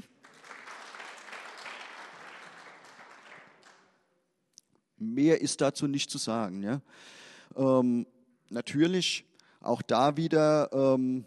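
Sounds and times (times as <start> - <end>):
audience applause: 0.0 - 3.9
speech: 5.0 - 11.2.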